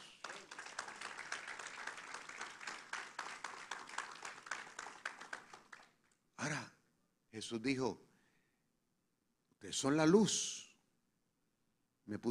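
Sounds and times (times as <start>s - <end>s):
audience applause: 0.0s - 6.0s
speech: 7.4s - 8.1s, 9.6s - 10.6s, 12.1s - 12.2s.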